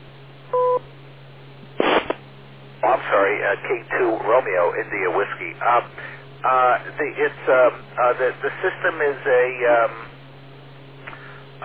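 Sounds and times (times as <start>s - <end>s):
beep tone: 0.5s - 0.8s
speech: 3.1s - 10.1s.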